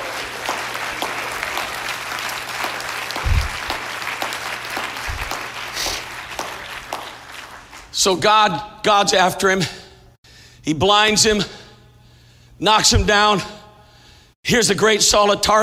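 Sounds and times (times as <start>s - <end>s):
audience clapping hands: 0.0s - 8.2s
speech: 8.0s - 9.8s, 10.6s - 11.6s, 12.6s - 13.6s, 14.5s - 15.6s.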